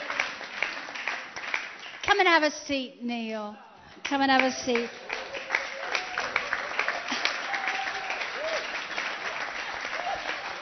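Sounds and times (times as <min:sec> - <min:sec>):
audience clapping: 0:00.0 - 0:02.5, 0:03.9 - 0:10.6
speech: 0:02.1 - 0:05.0.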